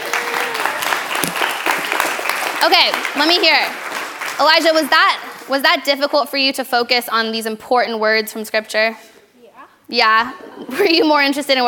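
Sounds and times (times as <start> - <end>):
crowd clapping: 0.0 - 6.1
speech: 2.6 - 9.1, 9.9 - 11.6.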